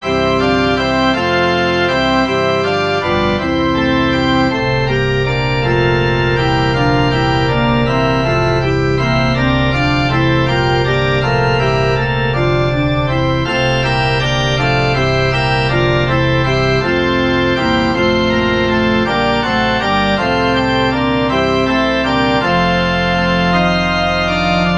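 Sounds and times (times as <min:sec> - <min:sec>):
musical prelude: 0:00.0 - 0:24.7.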